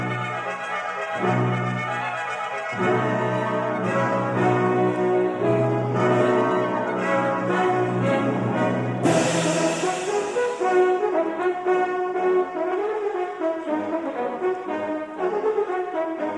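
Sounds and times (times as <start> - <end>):
orchestra playing: 0.0 - 16.3
symphonic choir singing: 2.7 - 11.2.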